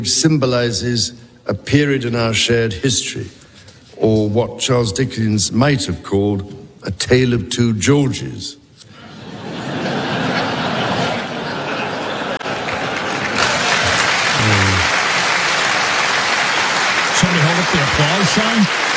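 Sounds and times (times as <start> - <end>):
speech: 0.0 - 3.4, 4.0 - 8.6, 18.0 - 18.9
laughter: 8.9 - 15.7
large audience applauding: 11.8 - 18.9.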